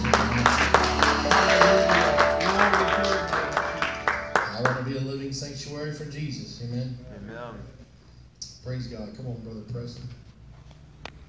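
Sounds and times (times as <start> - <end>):
group clapping hands: 0.0 - 5.0
speech: 5.3 - 7.8, 8.4 - 10.2.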